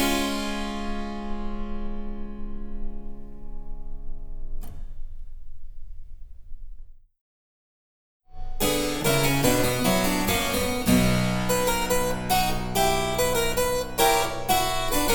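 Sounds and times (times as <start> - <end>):
harpsichord: 0.0 - 3.4, 8.4 - 15.1.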